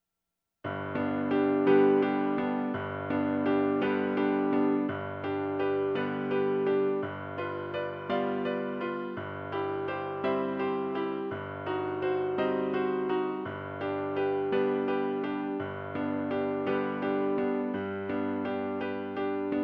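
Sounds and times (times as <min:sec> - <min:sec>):
piano piece: 0:00.6 - 0:19.6.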